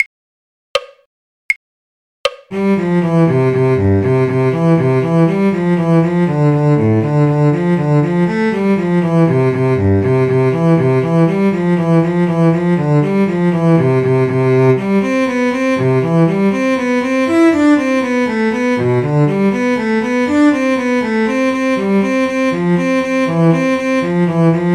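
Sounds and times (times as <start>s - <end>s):
cello: 2.5s - 24.7s.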